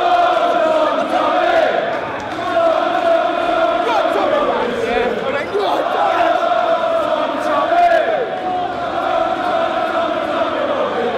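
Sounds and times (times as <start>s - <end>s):
crowd chanting a name: 0.0s - 11.1s.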